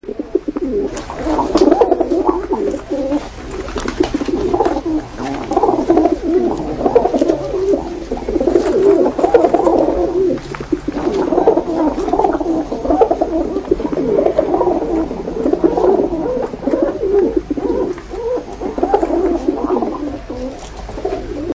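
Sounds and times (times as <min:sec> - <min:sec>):
pigeons cooing: 0:00.0 - 0:21.5.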